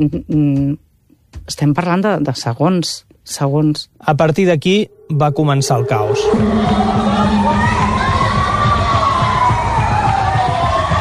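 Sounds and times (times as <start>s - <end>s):
speech: 0.0s - 7.4s
siren wailing: 4.6s - 10.9s
crowd screaming in panic: 5.0s - 10.9s.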